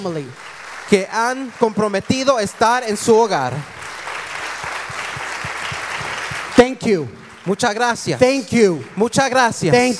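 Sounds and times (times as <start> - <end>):
speech: 0.0 - 3.8, 6.6 - 9.9
crowd applauding: 0.0 - 9.9
low rhythmic thumps: 4.8 - 6.9.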